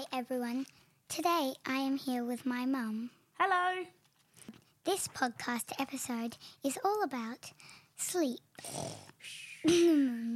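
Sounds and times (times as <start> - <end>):
speech: 0.0 - 4.0, 4.8 - 10.3
person fake snoring: 8.6 - 9.8.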